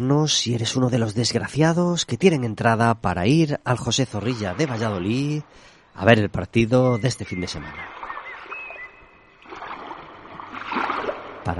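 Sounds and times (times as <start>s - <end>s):
speech: 0.0s - 8.0s
sea waves: 3.7s - 6.2s, 6.8s - 11.5s.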